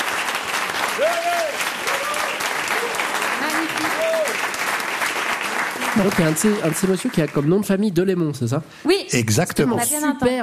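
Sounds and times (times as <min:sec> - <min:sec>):
audience applause: 0:00.0 - 0:08.0
speech: 0:06.0 - 0:10.4.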